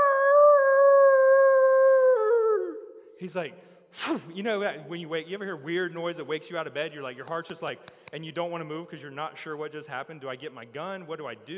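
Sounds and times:
voice imitating dog's blood-curdling howl: 0.0s - 3.0s
speech: 3.2s - 11.5s.

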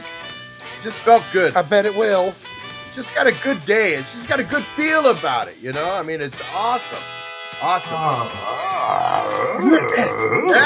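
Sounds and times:
speech: 0.8s - 10.6s
animal growling: 8.4s - 10.6s.

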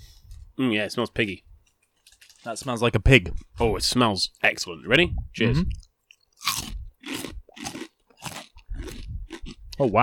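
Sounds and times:
speech: 0.6s - 1.5s, 2.4s - 5.8s, 9.8s - 10.0s
biting into crunchy pork crackling: 5.7s - 9.9s.

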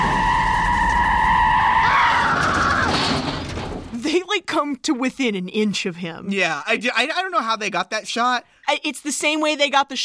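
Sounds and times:
van tires squealing as it skids out of a driveway: 0.0s - 3.3s
speech: 4.5s - 10.0s.

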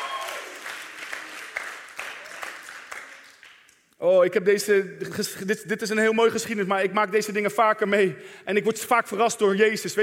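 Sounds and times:
audience applause: 0.0s - 3.7s
speech: 4.0s - 10.0s.

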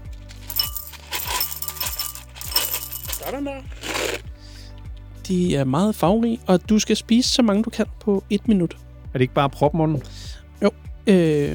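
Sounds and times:
Smarties candies poured into a bowl: 0.1s - 4.0s
speech: 3.3s - 4.2s, 5.3s - 11.5s.

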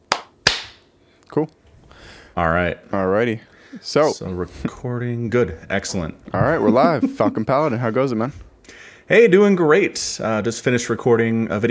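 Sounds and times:
sync clap: 0.0s - 0.9s
speech: 1.3s - 1.6s, 2.4s - 11.6s
laughter: 3.7s - 8.5s.

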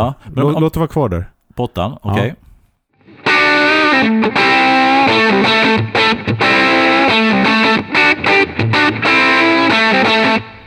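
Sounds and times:
speech: 0.0s - 2.5s, 4.0s - 9.1s
distorted electric guitar with full treble and no bass strumming chords: 3.2s - 10.6s.

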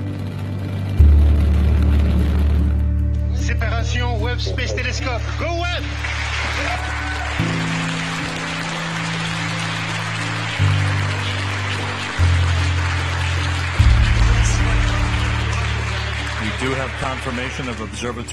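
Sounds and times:
applause in Mission Control Center: 0.0s - 18.3s
speech: 4.4s - 7.7s, 16.6s - 18.3s.

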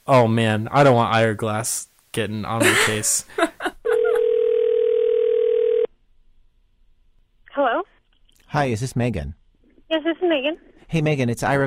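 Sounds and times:
speech: 0.1s - 3.5s, 8.5s - 11.6s
telephone line ringing tone: 4.0s - 5.9s.

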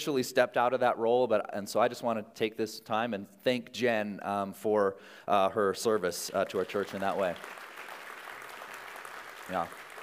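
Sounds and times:
speech: 0.0s - 7.6s, 9.5s - 9.8s
audience clapping: 6.2s - 10.0s.

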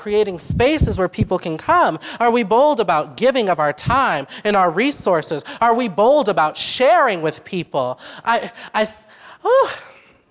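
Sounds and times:
speech: 0.0s - 9.9s
deep breaths by a preacher during a church sermon: 2.0s - 2.2s, 8.0s - 9.4s.

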